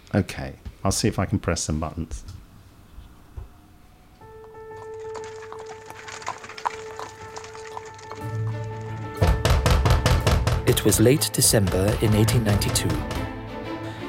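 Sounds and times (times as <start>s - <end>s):
speech: 0.1s - 2.4s, 10.8s - 13.3s
quiet eerie music with sustained tones: 3.4s - 14.0s
insistent knocking on a wooden front door: 9.2s - 13.4s.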